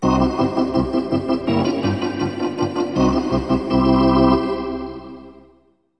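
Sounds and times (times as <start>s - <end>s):
hockey arena organ: 0.0s - 5.4s.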